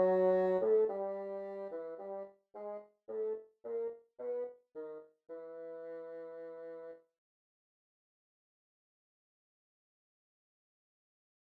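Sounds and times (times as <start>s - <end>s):
bassoon: 0.0s - 7.0s.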